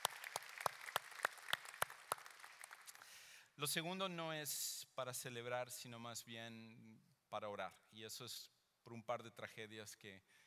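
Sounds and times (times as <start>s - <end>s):
audience applauding: 0.0s - 3.1s
steady rhythmic clap: 0.0s - 3.2s
speech: 3.6s - 10.4s.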